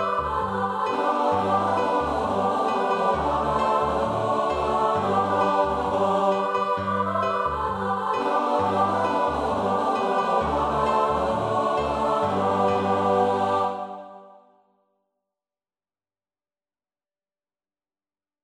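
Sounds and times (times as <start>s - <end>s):
choir singing: 0.0s - 14.5s.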